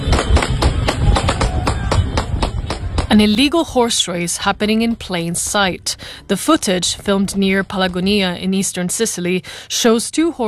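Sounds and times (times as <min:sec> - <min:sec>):
gunshots: 0:00.0 - 0:03.2
speech: 0:03.1 - 0:10.4.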